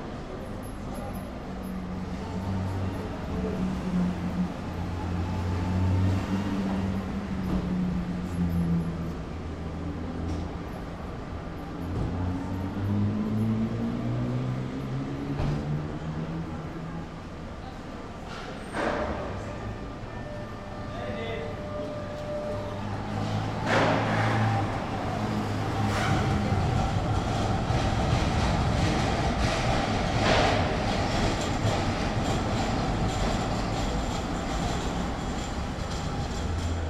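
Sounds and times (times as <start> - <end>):
trains and machinery rumbling at a station: 0.0 - 36.8
clanks and thuds: 23.2 - 24.8, 25.5 - 36.8.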